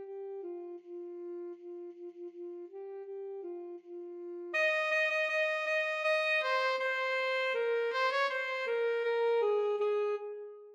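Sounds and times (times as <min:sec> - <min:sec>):
alto saxophone duet: 0:04.5 - 0:10.7.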